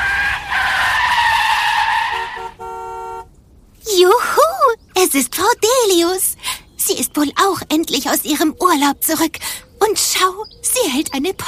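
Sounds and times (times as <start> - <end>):
car braking with squealing tires: 0.0 - 3.2
speech: 5.0 - 6.3, 6.9 - 11.4.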